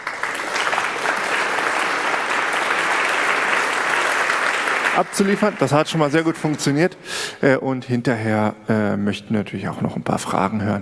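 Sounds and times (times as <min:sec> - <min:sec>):
audience applause: 0:00.0 - 0:06.9
speech: 0:05.0 - 0:10.8.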